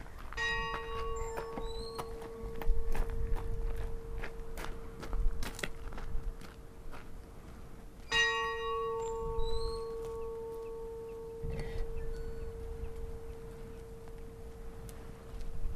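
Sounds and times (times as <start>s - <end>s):
Stadastadur church funeral bell ringing: 0.4s - 5.5s, 8.1s - 15.6s.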